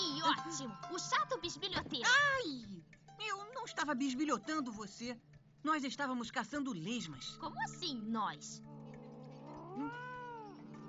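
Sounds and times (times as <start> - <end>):
speech: 0.4 - 8.7
lazy pet cat meowing: 9.1 - 10.8.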